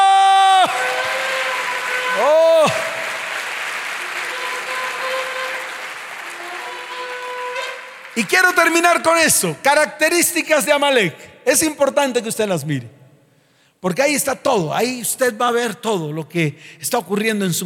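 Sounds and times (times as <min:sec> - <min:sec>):
audience applauding loudly: 0:00.0 - 0:09.5
speech: 0:08.2 - 0:13.0, 0:13.8 - 0:17.6.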